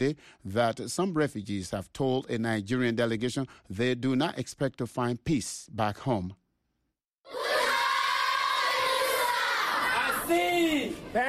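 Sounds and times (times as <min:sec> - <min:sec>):
speech: 0:00.0 - 0:06.4, 0:10.3 - 0:11.2
primary school children singing together at Minawawa refugee camp in northern Cameroon: 0:07.3 - 0:10.4.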